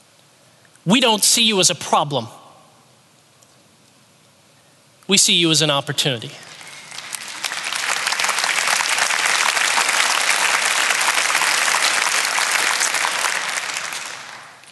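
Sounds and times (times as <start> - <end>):
speech: 0.8 - 2.4, 5.1 - 6.6
audience applause: 6.4 - 14.7.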